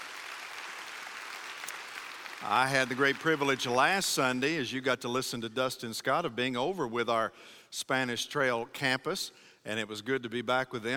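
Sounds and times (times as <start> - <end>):
church congregation applauding: 0.0 - 4.6
speech: 2.4 - 10.9.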